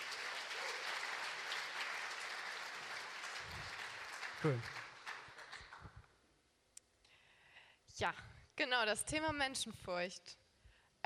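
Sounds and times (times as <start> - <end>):
applause: 0.0 - 6.1
speech: 4.4 - 4.8, 8.0 - 10.4.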